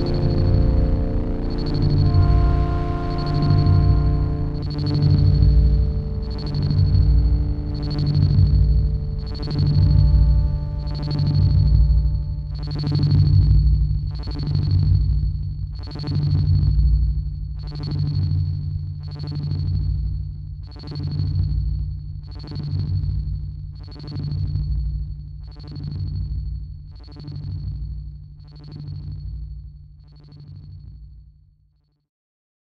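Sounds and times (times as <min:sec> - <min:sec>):
sine waves: 0:00.0 - 0:32.1.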